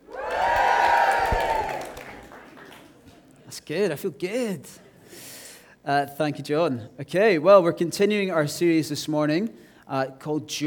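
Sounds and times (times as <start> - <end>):
audience cheering: 0.0 - 2.4
speech: 3.7 - 4.9, 5.8 - 10.6.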